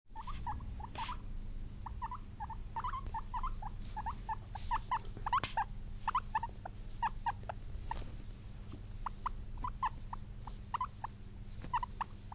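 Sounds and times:
guinea pig squeaking: 0.1 - 8.3, 9.0 - 12.3.

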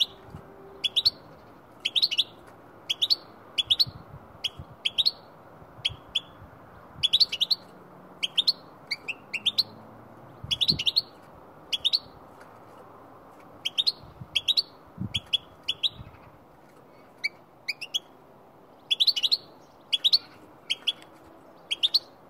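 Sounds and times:
goldfinch calling: 0.0 - 5.2, 7.0 - 9.8, 10.5 - 11.1, 11.7 - 12.2, 13.6 - 16.3, 18.8 - 22.2.

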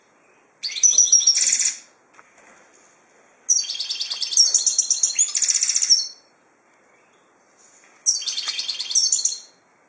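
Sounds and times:
finch chirping: 0.2 - 1.8, 3.5 - 6.3, 8.0 - 9.6.

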